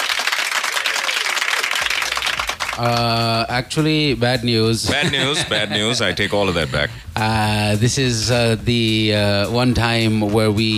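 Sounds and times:
applause sound effect: 0.0s - 3.4s
speech: 2.8s - 10.7s
laughter: 4.8s - 7.0s.

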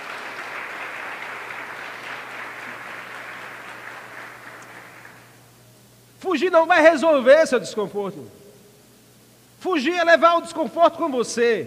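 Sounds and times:
audience applause: 0.0s - 5.4s
speech: 6.2s - 8.4s, 9.6s - 11.6s.

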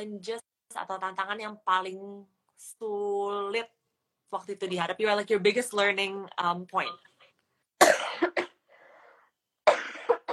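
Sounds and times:
speech: 0.0s - 7.1s
cough: 7.8s - 8.6s, 9.6s - 10.3s.

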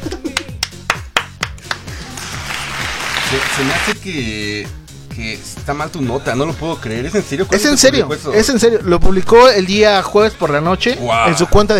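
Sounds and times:
applause: 0.6s - 4.0s
speech: 3.3s - 11.7s.

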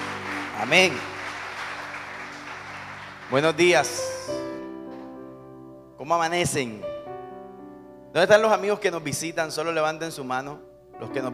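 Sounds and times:
audience applauding: 0.0s - 4.5s
speech: 0.6s - 1.1s, 3.3s - 4.6s, 6.0s - 6.9s, 8.1s - 11.3s.

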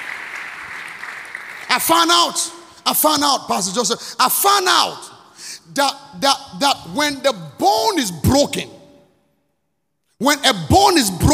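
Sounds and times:
audience clapping: 0.0s - 2.5s
speech: 1.8s - 5.1s, 5.7s - 8.8s, 10.2s - 11.3s.

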